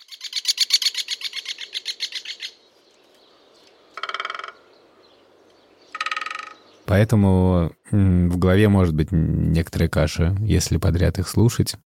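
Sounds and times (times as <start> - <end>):
common kestrel giving sharp kee-kee calls: 0.0 - 6.9
speech: 6.9 - 11.8.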